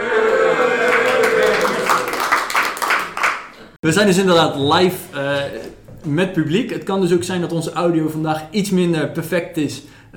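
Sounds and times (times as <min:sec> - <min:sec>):
small group applauding: 0:00.1 - 0:03.8
speech: 0:03.8 - 0:10.1.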